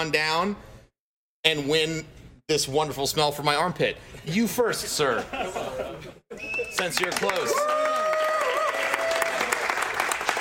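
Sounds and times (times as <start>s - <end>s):
speech: 0.0s - 0.7s, 1.4s - 7.9s
laughter: 5.1s - 6.7s
live audience clapping at an in-store event at Micro Center: 6.4s - 10.3s.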